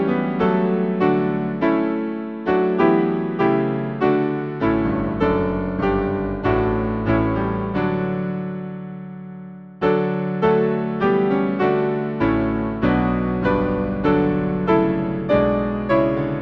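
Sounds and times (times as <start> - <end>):
hymn played on piano: 0.0 - 16.4.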